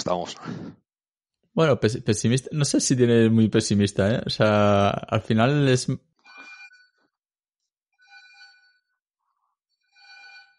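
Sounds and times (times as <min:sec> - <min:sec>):
speech: 0:00.0 - 0:00.8, 0:01.6 - 0:06.1
electronic doorbell ringing: 0:08.0 - 0:09.0, 0:09.8 - 0:10.5.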